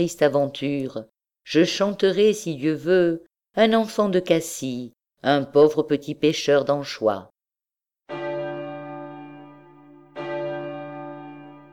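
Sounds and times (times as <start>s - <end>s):
speech: 0.0s - 7.3s
church bells ringing for vespers: 8.1s - 11.7s.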